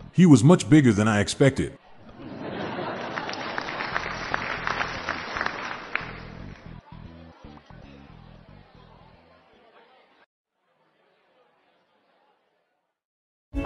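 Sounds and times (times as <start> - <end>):
speech: 0.2 - 1.8
laughter: 0.2 - 6.2
canned studio audience applause: 2.7 - 6.8.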